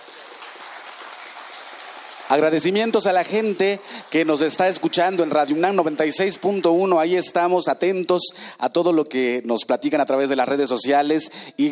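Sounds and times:
audience applause: 0:00.0 - 0:07.2
speech: 0:02.3 - 0:11.7.

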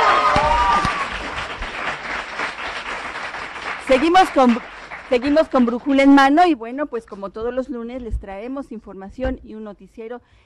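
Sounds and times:
audience applause: 0:00.0 - 0:06.2
speech: 0:03.9 - 0:10.4.

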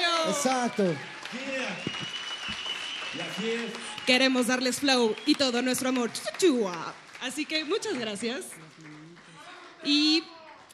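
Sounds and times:
shouts and cheers: 0:00.0 - 0:04.5
audience clapping: 0:00.0 - 0:10.7
speech: 0:00.2 - 0:02.1, 0:03.1 - 0:08.9, 0:09.8 - 0:10.4.

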